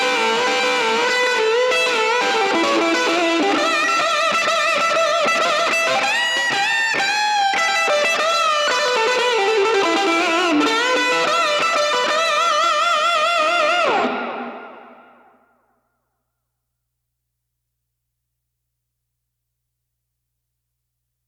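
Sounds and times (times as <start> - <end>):
lead guitar: 0.0 - 15.4.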